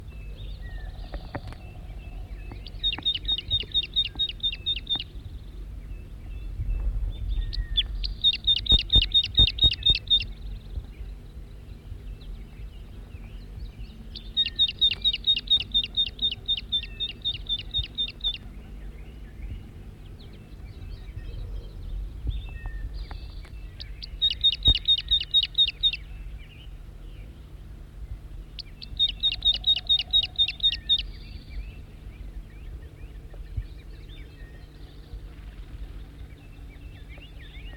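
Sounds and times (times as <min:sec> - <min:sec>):
low hum: 0:00.0 - 0:37.7
wild male bird calling: 0:00.5 - 0:05.2, 0:07.4 - 0:10.4, 0:14.0 - 0:19.2, 0:22.6 - 0:26.1, 0:28.5 - 0:32.1.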